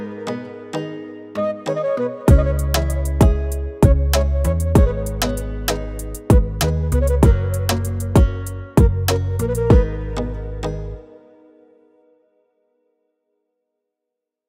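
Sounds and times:
oriental dancehall type beat instrumental: 2.3s - 10.2s.

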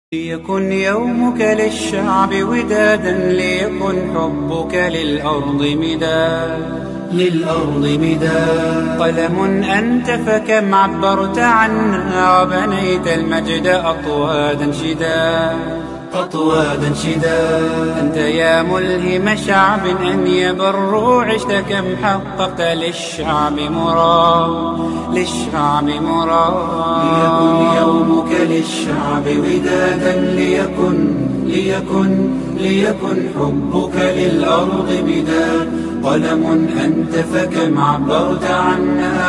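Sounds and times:
Arabic nasheed singing: 0.1s - 39.2s.

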